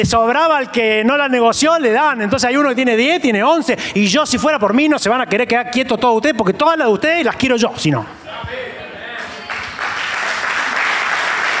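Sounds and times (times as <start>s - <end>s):
speech: 0.0s - 8.6s
hesitant audience applause: 9.2s - 11.5s.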